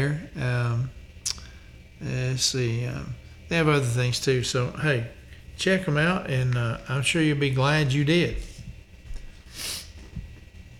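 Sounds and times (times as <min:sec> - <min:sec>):
speech: 0:00.0 - 0:01.0, 0:02.0 - 0:08.5
snort-like sniff through a stuffy nose: 0:09.4 - 0:10.0.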